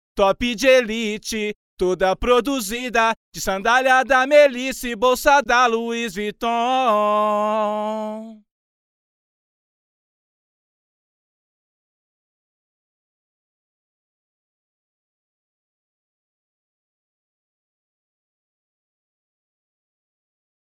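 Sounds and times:
a cappella singing: 0.2 - 8.5.

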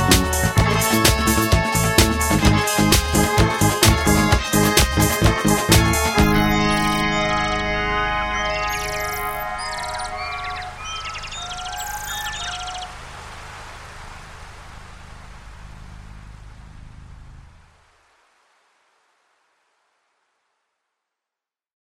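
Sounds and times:
rainforest instrumental music: 0.0 - 12.8.

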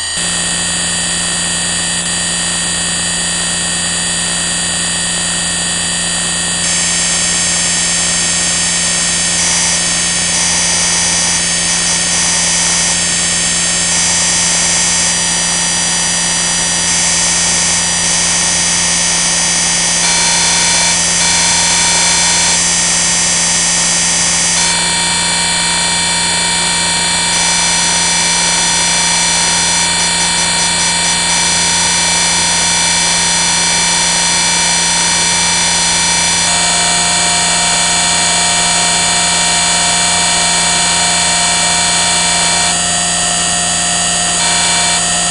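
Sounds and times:
noise: 0.1 - 45.2.

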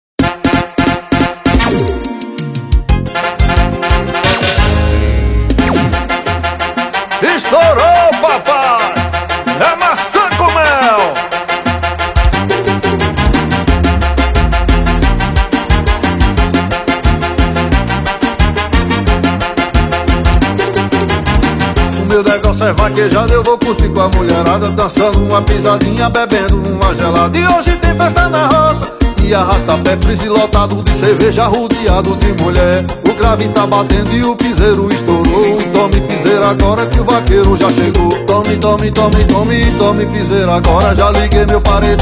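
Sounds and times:
piseiro forro music: 0.2 - 42.0.

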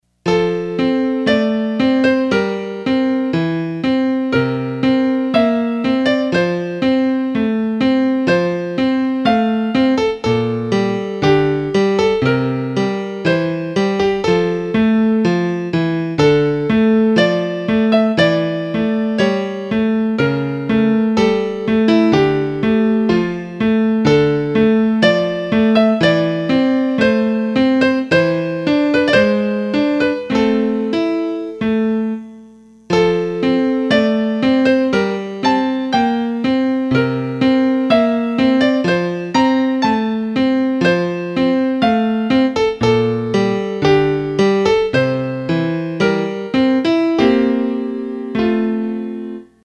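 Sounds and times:
piano: 0.0 - 49.6.

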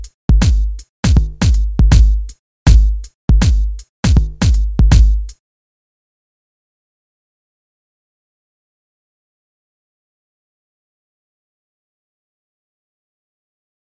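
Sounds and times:
hip hop reggae bass: 0.0 - 5.3.

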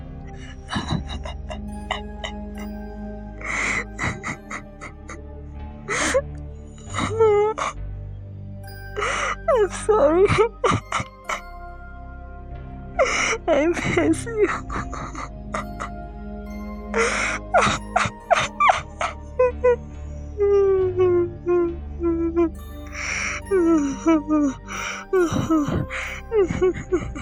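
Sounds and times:
scary girl crying: 0.7 - 2.6, 3.4 - 5.2, 5.9 - 6.2, 6.9 - 7.7, 9.0 - 11.5, 13.0 - 15.9, 16.9 - 19.8, 20.4 - 27.2.

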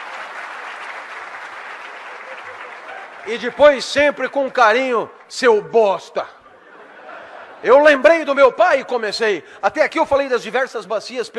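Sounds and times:
applause: 0.0 - 5.5
laughter: 1.9 - 3.6, 6.4 - 8.9
speech: 3.2 - 6.4, 7.6 - 11.3.

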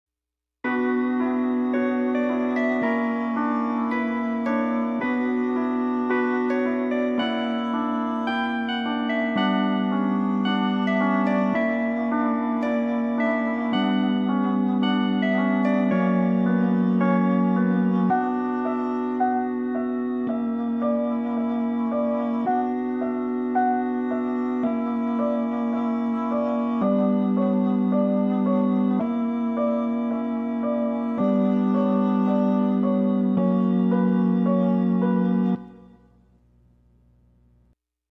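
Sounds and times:
B-flat harmonic minor music at 110 bpm: 0.6 - 37.8.

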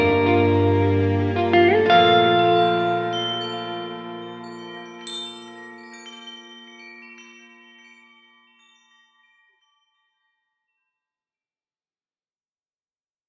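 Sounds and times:
instrumental music: 0.0 - 10.3.

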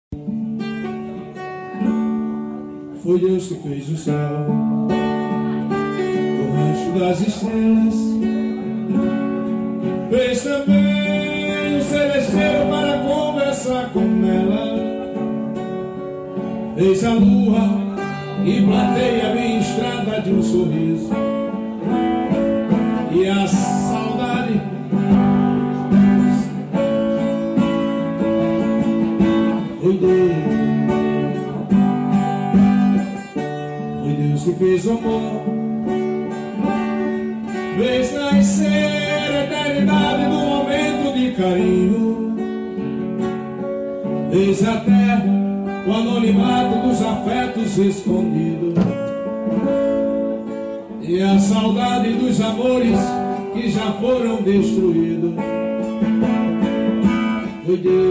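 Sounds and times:
voice and acoustic guitar: 0.0 - 58.1.

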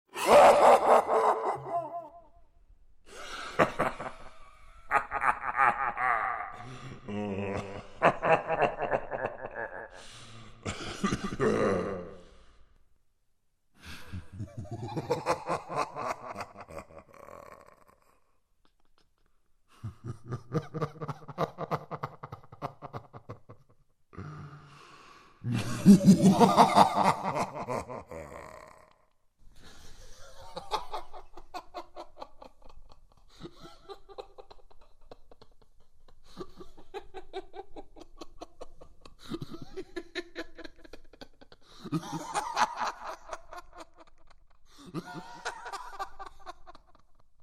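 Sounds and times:
evil man laughing insanely: 0.1 - 2.3, 3.2 - 4.3, 4.9 - 10.0, 10.7 - 12.2, 14.1 - 18.1, 19.8 - 23.6, 25.5 - 29.0, 30.0 - 47.2.

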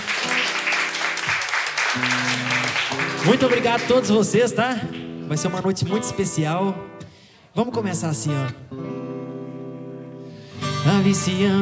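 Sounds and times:
crowd clapping: 0.0 - 5.3
speech: 2.0 - 2.3, 3.2 - 7.0, 7.6 - 8.9, 10.9 - 11.6.

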